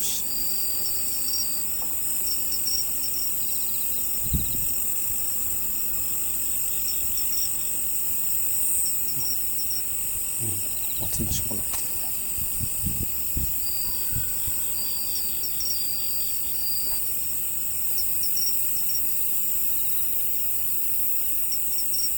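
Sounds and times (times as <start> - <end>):
crickets trilling: 0.0 - 22.1
speech: 11.2 - 11.8.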